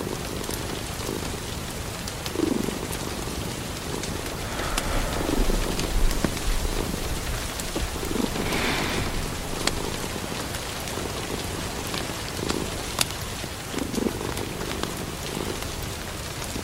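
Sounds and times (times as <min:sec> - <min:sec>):
steady rain pattering: 0:00.0 - 0:16.6
fire crackling: 0:02.3 - 0:13.1
low rumbling murmur: 0:02.6 - 0:12.0.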